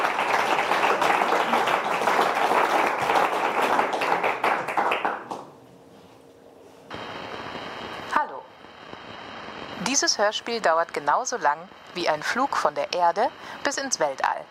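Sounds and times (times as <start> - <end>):
audience applause: 0.0 - 5.5
speech: 10.0 - 14.4.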